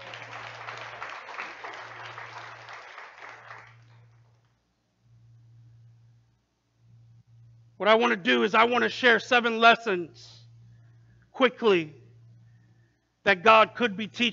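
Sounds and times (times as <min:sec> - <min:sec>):
audience clapping: 0:00.0 - 0:04.6
low electrical hum: 0:00.0 - 0:14.3
speech: 0:07.8 - 0:10.4, 0:11.4 - 0:12.0, 0:13.2 - 0:14.3.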